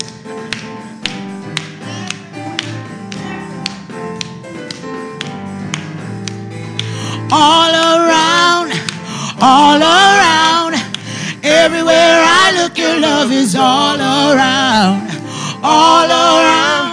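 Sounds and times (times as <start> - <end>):
audience clapping hands: 0.0 - 8.0, 8.8 - 9.1
speech: 7.3 - 8.0, 9.4 - 10.5, 11.6 - 16.8.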